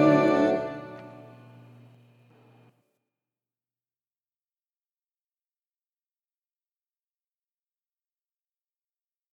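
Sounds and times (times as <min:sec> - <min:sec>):
alto voice singing a carol: 0:00.0 - 0:01.4.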